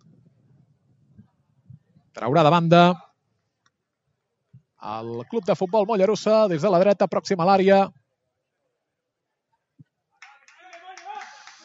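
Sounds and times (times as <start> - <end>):
speech: 2.2 - 3.0, 4.8 - 8.0
team clapping hands: 4.8 - 6.7, 10.2 - 11.6.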